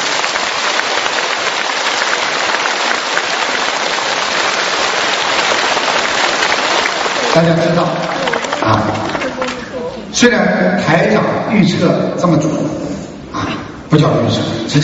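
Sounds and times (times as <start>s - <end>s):
audience applause: 0.0s - 10.1s
speech: 7.4s - 9.2s, 10.1s - 12.7s, 13.9s - 14.8s.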